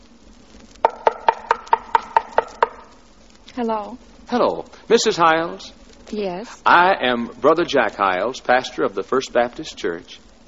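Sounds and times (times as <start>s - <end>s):
knocking on a door: 0.8s - 2.8s
speech: 3.6s - 10.4s.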